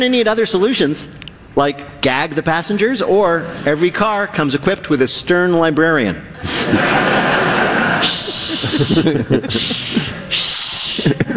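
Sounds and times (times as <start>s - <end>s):
speech: 0.0s - 7.4s, 8.8s - 10.2s
laughter: 6.4s - 11.3s
people shushing: 7.9s - 11.2s.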